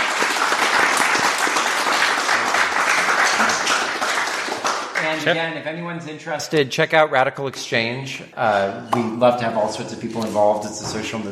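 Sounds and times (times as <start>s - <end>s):
audience applause: 0.0s - 5.3s
speech: 5.1s - 11.3s.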